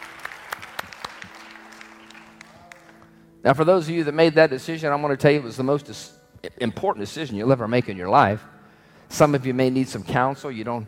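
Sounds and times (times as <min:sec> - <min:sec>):
audience clapping hands in praise: 0:00.0 - 0:03.2
speech: 0:03.4 - 0:10.8.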